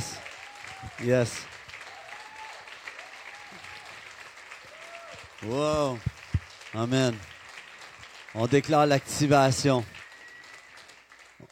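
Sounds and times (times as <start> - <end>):
voices cheering: 0.0 - 7.8, 8.4 - 11.5
crowd applauding: 0.0 - 11.5
speech: 1.0 - 1.5, 5.4 - 6.1, 6.7 - 7.3, 8.4 - 10.0.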